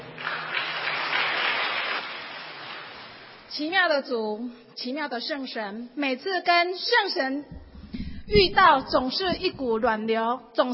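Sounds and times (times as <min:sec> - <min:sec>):
audience applauding: 0:00.0 - 0:03.3
speech: 0:03.5 - 0:07.6, 0:08.3 - 0:10.7.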